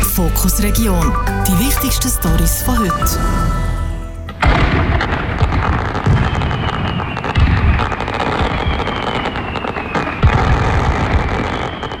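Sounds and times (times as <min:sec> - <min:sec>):
speech: 0:00.2 - 0:03.8
fireworks exploding: 0:04.3 - 0:11.9.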